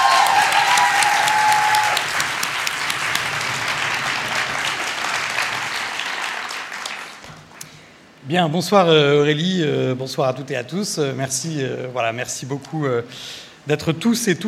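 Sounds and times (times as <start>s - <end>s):
audience applause: 0.0s - 7.6s
speech: 8.3s - 14.4s.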